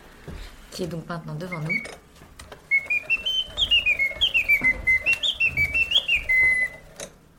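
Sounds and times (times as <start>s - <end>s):
speech: 0.3s - 2.0s
mechanical singing bird automaton warbling: 2.7s - 7.0s.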